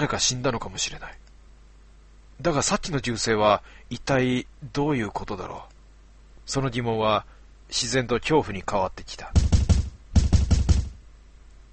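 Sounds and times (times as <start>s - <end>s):
speech: 0.0s - 1.2s, 2.4s - 5.7s, 6.5s - 9.5s
knocking on a door: 9.4s - 11.0s.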